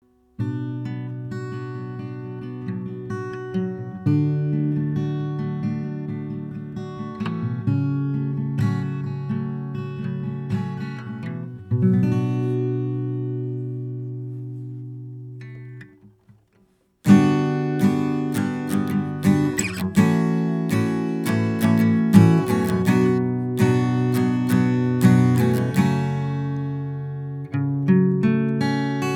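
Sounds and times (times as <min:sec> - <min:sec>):
acoustic guitar recorded with Lewitt LCT 840: 0:00.0 - 0:29.1.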